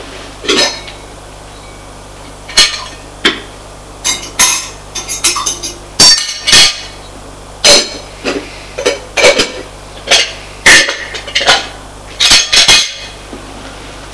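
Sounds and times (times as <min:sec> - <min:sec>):
dishes, pots and cutlery clattering while preparing a meal: 0:00.5 - 0:01.0, 0:04.1 - 0:06.8, 0:08.8 - 0:13.1.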